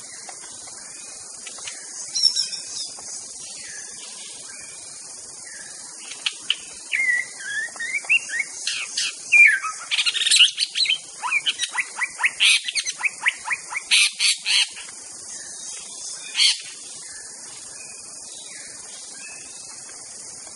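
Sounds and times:
white-rumped shama song: 5.5 - 14.8.

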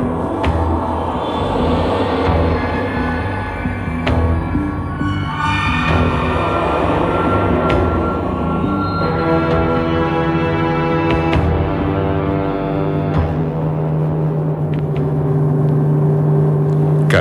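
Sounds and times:
car engine drone driving through the city: 0.0 - 17.2.

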